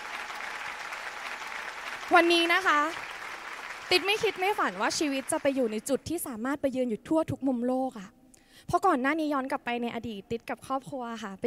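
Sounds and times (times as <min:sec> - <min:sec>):
audience applause: 0:00.0 - 0:05.9
speech: 0:02.1 - 0:03.1, 0:03.9 - 0:11.4.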